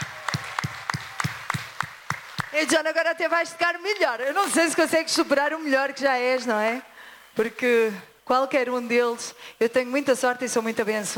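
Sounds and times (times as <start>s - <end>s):
concert audience clapping in unison for the musicians: 0.0s - 2.8s
speech: 2.6s - 11.1s.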